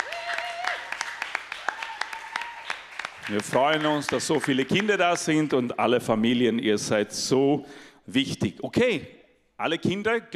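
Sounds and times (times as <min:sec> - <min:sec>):
applause for first-time guests: 0:00.0 - 0:05.6
speech: 0:03.3 - 0:10.3.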